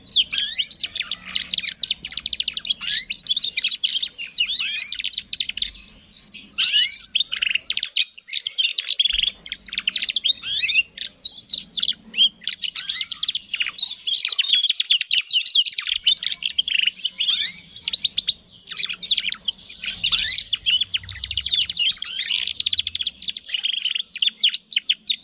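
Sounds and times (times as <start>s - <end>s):
Atlantic canary rich rapid song: 0.0s - 25.2s
low hum: 17.9s - 23.4s.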